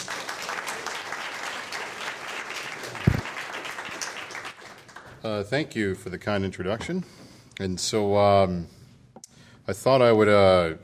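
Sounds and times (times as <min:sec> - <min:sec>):
audience applause welcoming a speaker to the podium: 0:00.0 - 0:05.2
speech: 0:05.2 - 0:08.8, 0:09.7 - 0:10.8.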